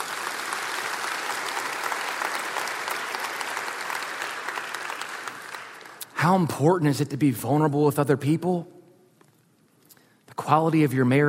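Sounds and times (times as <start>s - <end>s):
audience applause: 0.0s - 6.1s
speech: 6.2s - 8.8s, 10.5s - 11.2s.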